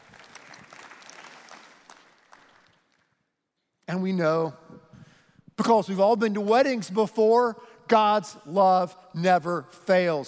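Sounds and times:
audience clapping: 0.0 - 3.2
speech: 3.9 - 4.7, 5.6 - 10.2.

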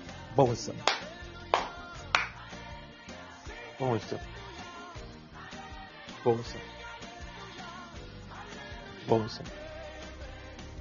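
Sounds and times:
speech: 0.4 - 1.1, 3.8 - 4.4, 6.2 - 6.8, 9.0 - 9.6
audience clapping: 0.8 - 2.5.

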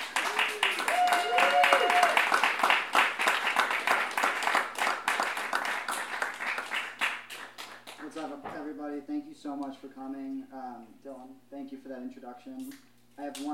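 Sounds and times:
audience applause at an author's evening book event: 0.0 - 8.2
speech: 9.4 - 13.5.

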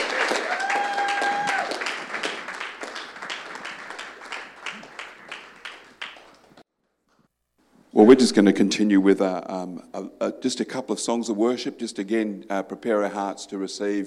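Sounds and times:
audience clapping: 0.0 - 6.6
speech: 8.0 - 14.0.

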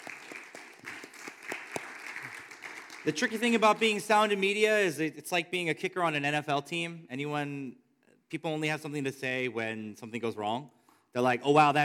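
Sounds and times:
audience applause: 0.0 - 4.4
speech: 3.0 - 11.8.

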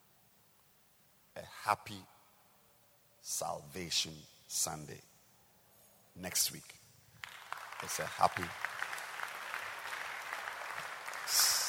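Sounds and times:
speech: 1.7 - 2.1, 3.2 - 5.1, 6.2 - 6.8, 7.8 - 8.8
audience clapping: 7.2 - 11.6.

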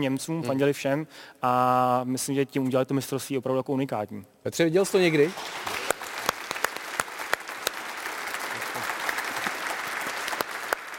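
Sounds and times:
speech: 0.0 - 5.8
applause: 5.0 - 10.9.

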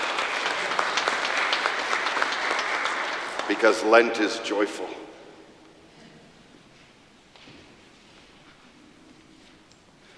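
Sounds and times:
crowd applauding: 0.0 - 4.7
speech: 3.5 - 5.0.

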